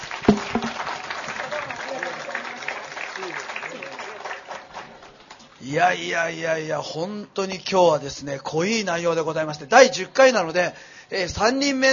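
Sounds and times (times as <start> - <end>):
audience applause: 0.0 - 5.4
speech: 5.6 - 11.9.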